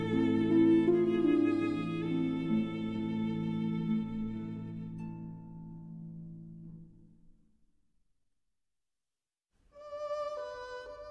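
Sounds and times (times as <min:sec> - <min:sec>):
berceuse for violin and harp: 0:00.0 - 0:05.9, 0:09.8 - 0:11.0.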